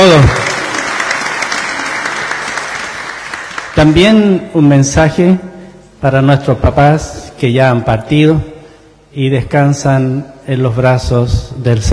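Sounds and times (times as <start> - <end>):
speech: 0.0 - 0.4, 3.8 - 8.5, 9.1 - 11.9
audience applause: 0.0 - 4.0.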